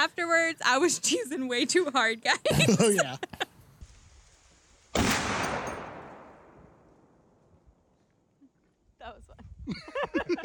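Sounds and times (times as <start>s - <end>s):
speech: 0.0s - 3.4s
laughter: 2.4s - 3.5s, 9.7s - 10.4s
Barrett rifle firing a single shot: 4.9s - 6.9s.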